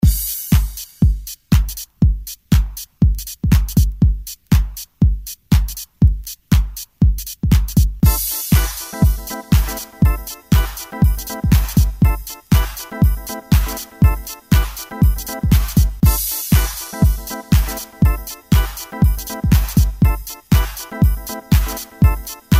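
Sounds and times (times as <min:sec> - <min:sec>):
disco music: 0:00.0 - 0:22.5.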